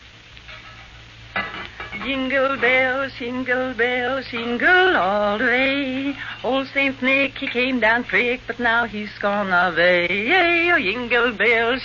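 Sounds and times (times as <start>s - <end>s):
food frying in a pan: 0.0s - 11.8s
utensil stirring food in a pan: 0.3s - 3.2s, 4.2s - 7.7s
speech: 2.0s - 11.8s.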